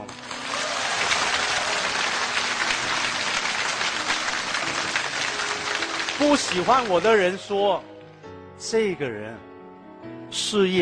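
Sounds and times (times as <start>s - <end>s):
audience applause: 0.0s - 7.5s
speech: 6.2s - 7.9s, 8.6s - 9.5s, 10.3s - 10.8s.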